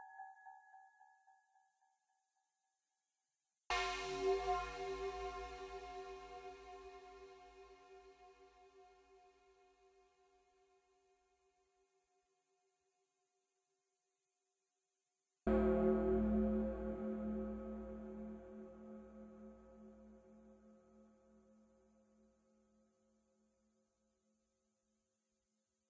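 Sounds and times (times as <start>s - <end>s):
city synth ambience from a game: 3.7s - 9.3s, 15.5s - 20.9s.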